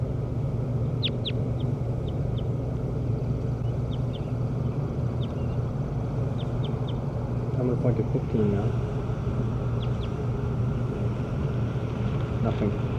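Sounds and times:
steady low rumbling background: 0.0 - 12.9
bird chirping: 0.8 - 2.6, 3.2 - 7.6, 9.6 - 10.3
speech: 7.6 - 9.5, 12.5 - 12.9.

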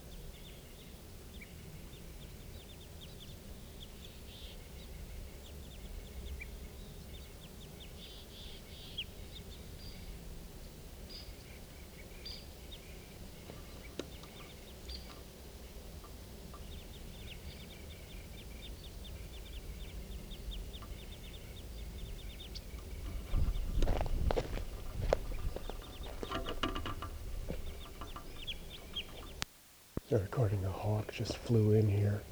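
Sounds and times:
crossbills calling: 11.1 - 32.3
speech: 30.1 - 32.3.

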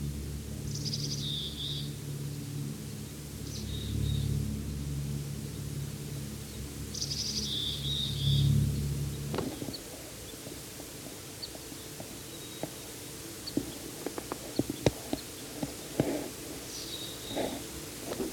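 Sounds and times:
low rumbling hum: 0.0 - 18.3
bird chirping calls: 6.5 - 8.5, 9.1 - 17.8.

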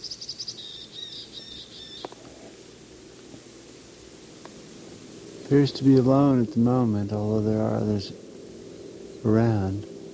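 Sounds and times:
bird singing high in a tree: 0.0 - 2.3, 5.4 - 10.1
speech: 5.5 - 8.2, 9.2 - 9.9.

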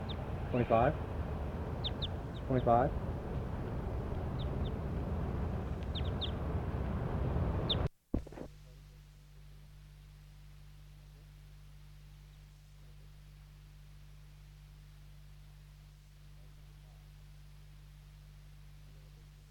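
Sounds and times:
buzzy harmonic bird calls: 0.0 - 6.6, 7.3 - 7.9
faint high chirps: 1.6 - 2.8, 5.8 - 6.4.

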